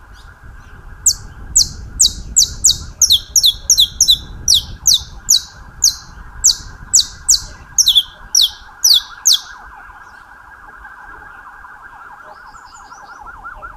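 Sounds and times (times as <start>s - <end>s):
saffron finch chirping: 1.0s - 9.6s.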